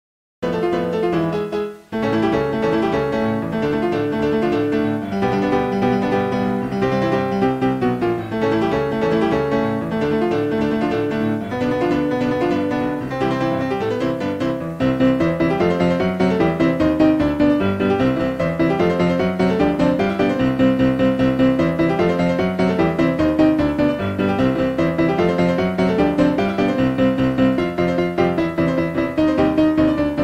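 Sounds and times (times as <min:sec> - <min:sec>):
Synthesia midi piano music: 0:00.4 - 0:30.2.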